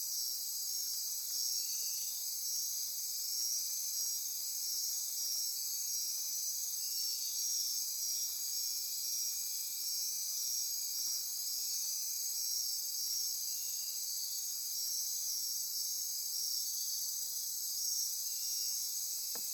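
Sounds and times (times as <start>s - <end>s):
insect chorus buzzing: 0.2s - 19.5s.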